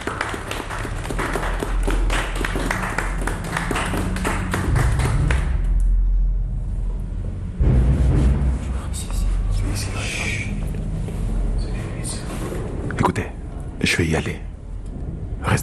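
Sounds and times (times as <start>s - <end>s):
group applauding: 0.0s - 5.7s
low rumbling background: 0.0s - 15.6s.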